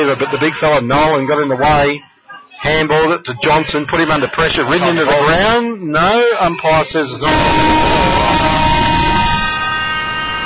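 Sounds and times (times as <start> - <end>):
speech: 0.0 - 7.8
final siren at Greenway Oval football ground: 7.2 - 10.4.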